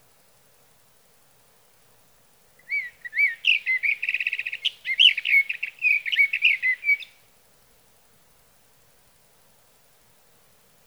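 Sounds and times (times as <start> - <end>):
sage thrasher song of whistles and warbles: 2.6 - 7.2.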